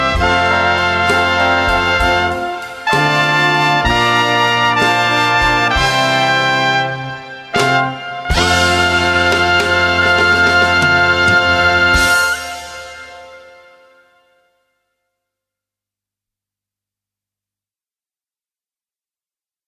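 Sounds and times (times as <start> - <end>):
trumpet music: 0.0 - 15.0.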